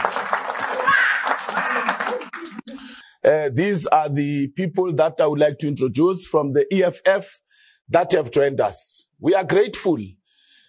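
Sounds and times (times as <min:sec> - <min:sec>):
audience round of applause: 0:00.0 - 0:02.7
speech: 0:03.2 - 0:10.2.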